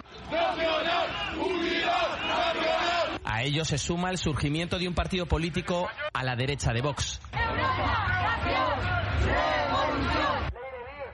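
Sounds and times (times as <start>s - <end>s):
crowd shouting at a demonstration: 0.0s - 3.2s, 7.3s - 10.9s
speech: 3.4s - 9.6s.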